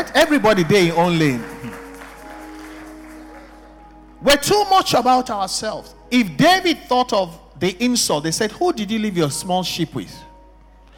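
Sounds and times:
speech: 0:00.0 - 0:01.5, 0:04.2 - 0:10.3
audience clapping: 0:00.0 - 0:04.3.

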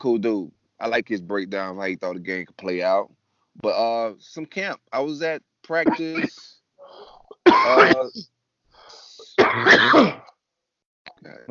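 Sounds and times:
speech: 0:00.0 - 0:06.6, 0:07.5 - 0:08.3, 0:09.5 - 0:10.2, 0:11.2 - 0:11.5
faint breathing: 0:06.4 - 0:07.4, 0:08.7 - 0:09.4
loud voiced sneezes: 0:07.4 - 0:08.2, 0:09.2 - 0:10.3.

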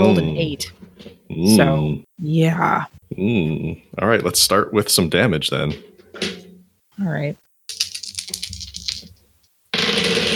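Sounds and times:
speech: 0:00.0 - 0:06.4, 0:07.0 - 0:07.5
three six-sided dice rolling: 0:07.7 - 0:09.2.

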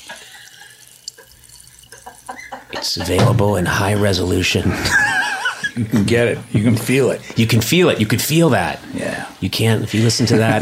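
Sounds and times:
sparkling water poured into a glass: 0:00.0 - 0:02.6
speech: 0:02.8 - 0:05.1, 0:05.8 - 0:10.6
laughter: 0:03.9 - 0:06.0, 0:09.9 - 0:10.6.

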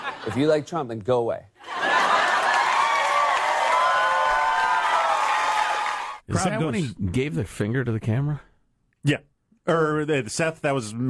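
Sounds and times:
speech: 0:00.2 - 0:01.5, 0:06.3 - 0:11.0
crowd cheering wildly: 0:01.6 - 0:06.4.

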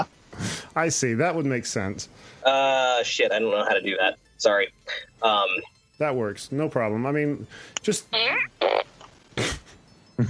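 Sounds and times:
speech: 0:00.8 - 0:08.9
fart machine sound effects: 0:08.2 - 0:09.7.

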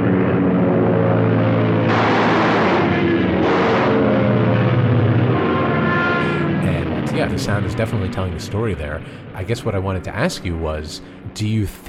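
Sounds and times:
airplane engines roaring: 0:00.0 - 0:11.8
machine gun fire: 0:01.9 - 0:04.2
speech: 0:07.3 - 0:11.8.

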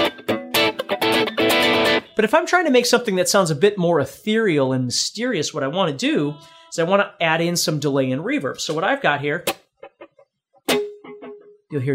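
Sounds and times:
dry clean electric guitar funk chord strums on single coil pickup: 0:00.0 - 0:02.2, 0:09.8 - 0:11.7
speech: 0:02.2 - 0:09.6, 0:11.7 - 0:11.9.

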